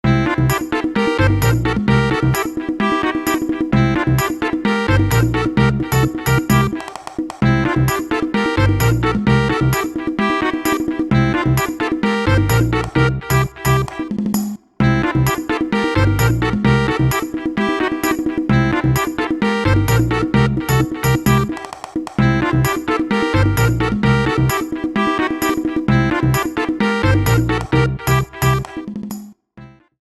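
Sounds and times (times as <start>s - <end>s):
hip hop mix: 0.1s - 29.3s.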